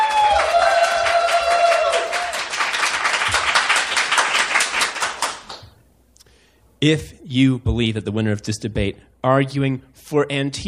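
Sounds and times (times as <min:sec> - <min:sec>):
audience applause: 0:00.0 - 0:05.7
speech: 0:06.8 - 0:10.6.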